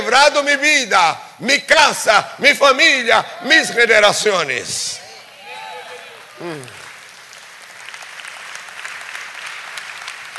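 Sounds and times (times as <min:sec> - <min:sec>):
speech: 0:00.1 - 0:05.0, 0:06.4 - 0:06.8
crowd clapping: 0:05.0 - 0:10.3.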